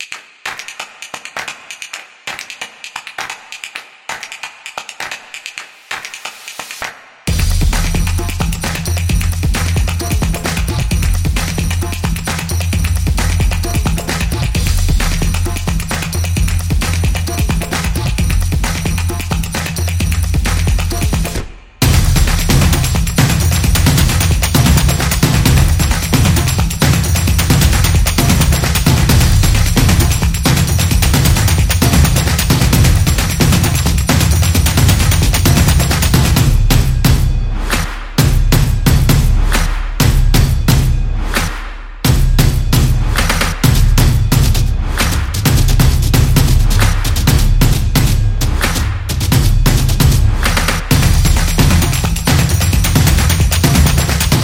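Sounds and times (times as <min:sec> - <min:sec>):
percussion beat: 0:00.0 - 0:54.4.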